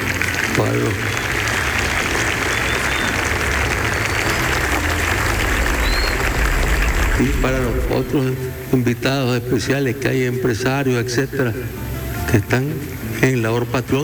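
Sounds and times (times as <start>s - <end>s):
audience applause: 0.0s - 8.8s
speech: 0.6s - 1.2s, 7.2s - 14.0s.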